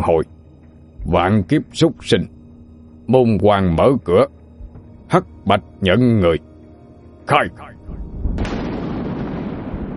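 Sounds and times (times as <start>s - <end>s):
speech: 0.0s - 0.4s, 1.0s - 2.4s, 3.1s - 4.4s, 5.1s - 6.5s, 7.3s - 7.7s
lightning bolt thunder effect in an audio drama: 7.8s - 9.9s.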